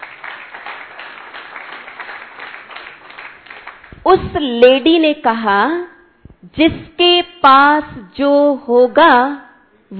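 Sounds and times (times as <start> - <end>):
audience applauding: 0.0 - 4.0
speech: 4.0 - 5.9, 6.5 - 9.9.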